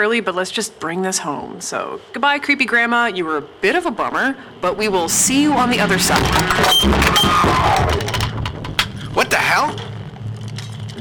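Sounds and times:
speech: 0.0 - 8.2, 9.2 - 9.9
table being knocked over: 6.0 - 9.0.

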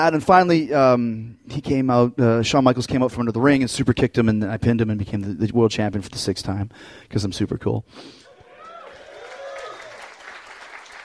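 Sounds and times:
speech: 0.0 - 8.2
crowd applause: 8.3 - 11.0.

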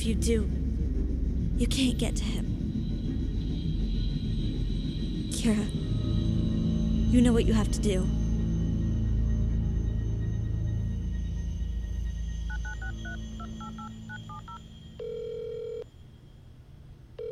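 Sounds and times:
speech: 0.0 - 0.6, 1.6 - 2.5, 5.3 - 5.8, 7.1 - 8.2
low rumble: 0.0 - 17.2
ringback tones: 10.4 - 16.6
touch-tone beeps of phone number being dialed: 12.5 - 15.8.

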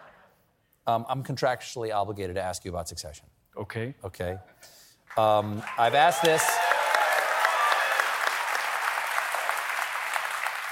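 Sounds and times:
speech: 0.8 - 6.6
audience applause: 5.2 - 10.7.

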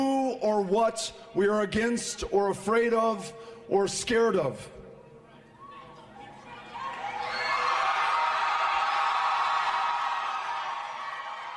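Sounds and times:
speech: 0.6 - 4.8
rally crowd cheering: 5.6 - 11.5.

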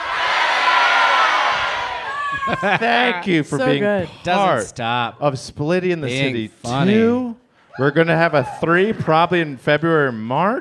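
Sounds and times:
audience yelling their first names together: 0.0 - 3.2
laughter: 2.1 - 3.9
speech: 2.5 - 10.5.

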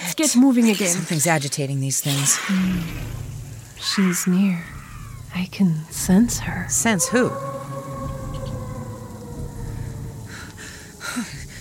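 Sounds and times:
speech: 0.2 - 7.8
creature howling: 2.4 - 11.5
low rumble: 2.8 - 4.0, 4.6 - 11.5.

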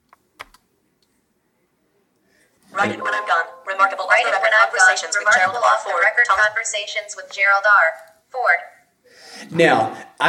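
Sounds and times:
computer keyboard keys clicking including the enter key: 0.1 - 0.6
speech: 2.8 - 3.4, 4.2 - 8.7, 9.4 - 10.2.

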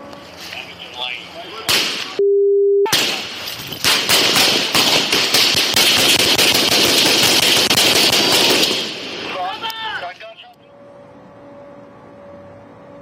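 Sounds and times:
voices: 0.3 - 2.2, 9.2 - 10.8
gunfire exchange between a suspect and police officers: 3.8 - 9.2.

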